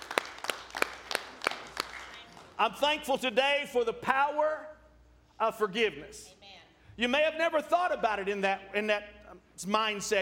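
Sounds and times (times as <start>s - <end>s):
audience hand clapping: 0.0s - 2.7s
speech: 2.6s - 4.7s, 5.4s - 6.4s, 7.0s - 10.2s.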